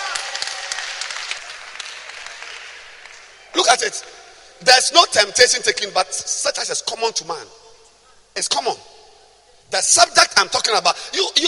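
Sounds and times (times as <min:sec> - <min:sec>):
crowd clapping hands: 0:00.0 - 0:03.5
speech: 0:03.6 - 0:07.6, 0:08.4 - 0:08.9, 0:09.7 - 0:11.4.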